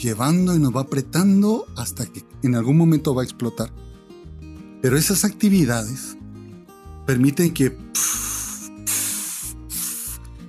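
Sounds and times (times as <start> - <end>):
speech: 0.0 - 3.9, 4.8 - 6.2, 7.1 - 8.4
steam hissing from a pressure cooker valve: 8.0 - 10.3.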